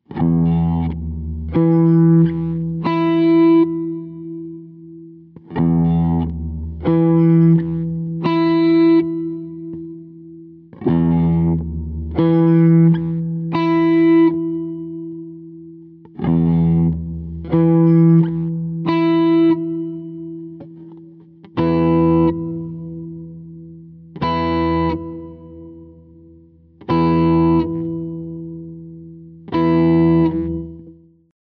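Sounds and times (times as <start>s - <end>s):
guitar: 0.0s - 31.4s.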